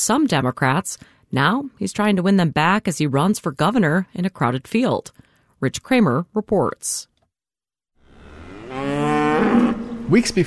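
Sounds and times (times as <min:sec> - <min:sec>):
speech: 0:00.0 - 0:07.1, 0:08.8 - 0:10.4
cattle mooing at Riverview Dairy Farm in Chippewa County: 0:08.0 - 0:10.1.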